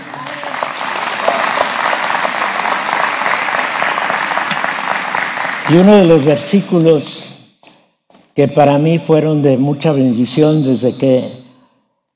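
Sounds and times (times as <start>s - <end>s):
audience applause: 0.0s - 6.6s
speech: 5.7s - 7.2s, 8.4s - 11.4s.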